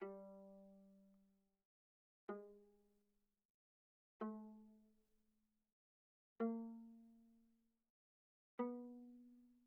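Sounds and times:
viola pizzicato on the G string: 0.0s - 1.2s, 2.3s - 2.8s, 4.2s - 4.8s, 6.4s - 7.4s, 8.6s - 9.6s.

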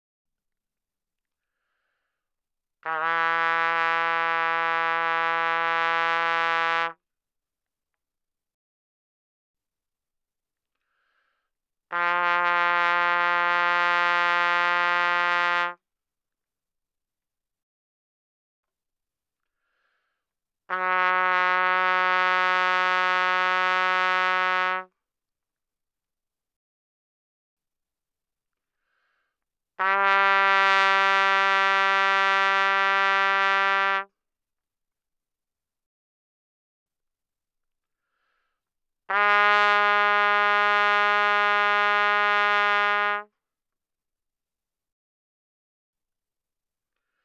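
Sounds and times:
trumpet notes without vibrato, fortissimo: 2.8s - 7.0s, 11.9s - 15.8s, 20.7s - 24.9s, 29.8s - 34.1s, 39.1s - 43.3s.

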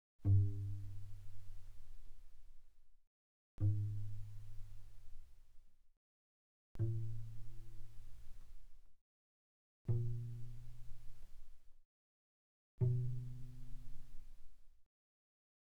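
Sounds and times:
soft cello pizzicato on the C string: 0.2s - 2.4s, 3.6s - 5.5s, 6.8s - 8.6s, 9.9s - 11.6s, 12.8s - 14.6s.

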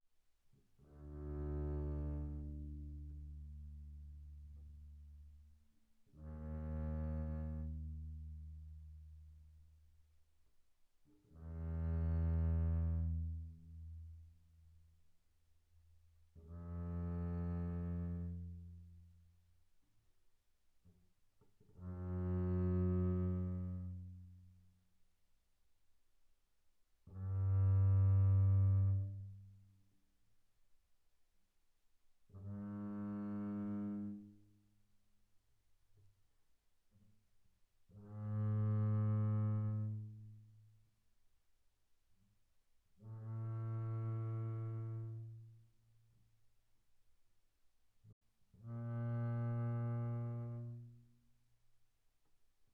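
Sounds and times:
double bass bowed pianissimo on the D string: 0.8s - 9.8s, 11.1s - 14.8s, 16.2s - 19.3s, 20.8s - 24.6s, 27.0s - 29.8s, 32.4s - 34.7s, 37.9s - 40.6s, 43.0s - 45.8s, 48.5s - 51.4s.

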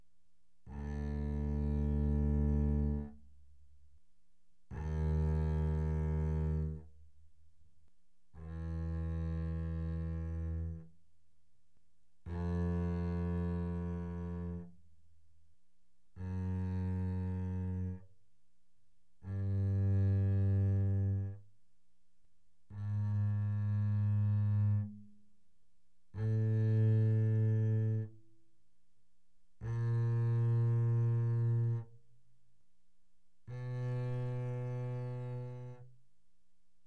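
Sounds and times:
double bass bowed mezzo forte on the D string from D2 to B2: 0.6s - 3.3s, 4.7s - 7.0s, 8.3s - 10.9s, 12.2s - 14.8s, 16.1s - 18.1s, 19.2s - 21.5s, 22.7s - 25.2s, 26.1s - 28.2s, 29.6s - 32.0s, 33.4s - 35.9s.

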